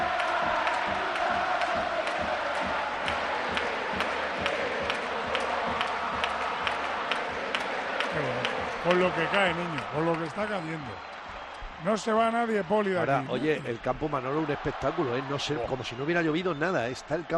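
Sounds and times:
football stadium crowd singing club anthem: 0:00.0 - 0:09.8
speech: 0:08.9 - 0:11.1, 0:11.8 - 0:17.3.

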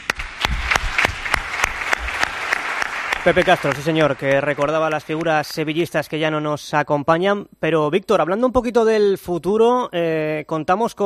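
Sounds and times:
loud stadium applause: 0:00.0 - 0:05.7
speech: 0:03.2 - 0:11.0.

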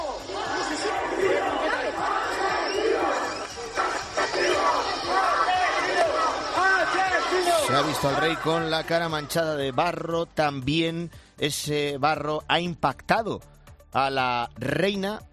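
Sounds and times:
large angry crowd shouting: 0:00.0 - 0:10.1
speech: 0:07.8 - 0:15.3.

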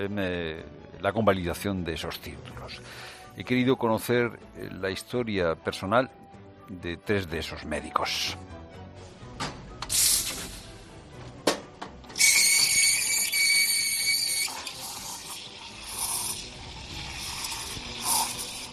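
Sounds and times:
speech: 0:00.0 - 0:08.5
coffee machine steam hiss in a restaurant preparing to open: 0:09.9 - 0:10.8, 0:12.2 - 0:18.7.

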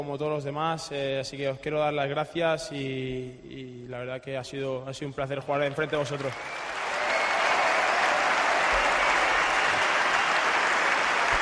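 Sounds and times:
speech: 0:00.0 - 0:06.8
stadium crowd ovation and applause: 0:05.7 - 0:11.4.

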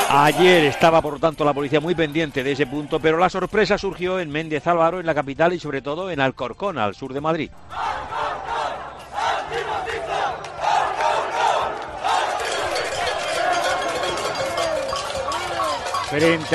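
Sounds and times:
protest crowd shouting and chanting: 0:00.0 - 0:03.7, 0:07.5 - 0:16.5
speech: 0:00.1 - 0:08.5, 0:16.1 - 0:16.5.

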